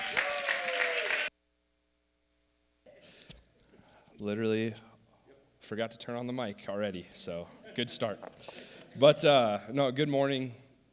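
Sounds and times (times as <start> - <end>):
audience applause: 0.0 - 1.3
speech: 4.2 - 4.9, 5.7 - 10.6.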